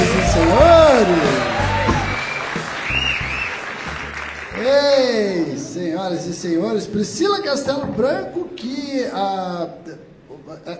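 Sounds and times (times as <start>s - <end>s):
audience applause: 0.0s - 5.6s
speech: 6.1s - 10.7s.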